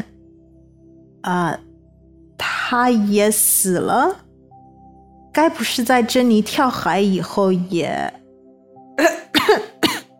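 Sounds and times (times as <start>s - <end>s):
speech: 1.2s - 1.7s, 2.7s - 4.2s, 5.4s - 8.2s, 9.0s - 9.7s
harsh choking coughs: 9.0s - 10.1s.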